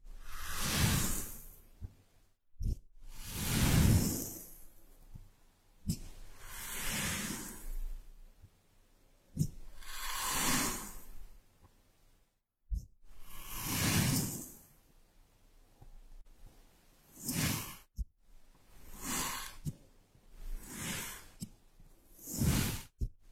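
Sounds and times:
kinetic sand rustling swishes: 0.1 - 1.6, 3.1 - 4.8, 6.3 - 7.8, 9.9 - 11.2, 13.4 - 14.6, 17.1 - 17.9, 18.7 - 19.7, 20.5 - 21.4, 22.1 - 23.0.

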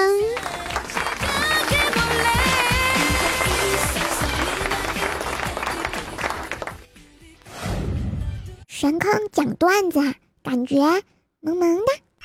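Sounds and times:
crowd clapping: 0.0 - 6.9
speech: 8.8 - 12.0.

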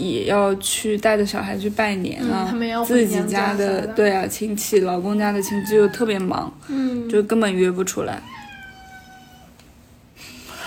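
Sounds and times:
speech: 0.0 - 8.4
cat meowing: 5.2 - 6.3, 8.2 - 9.6.

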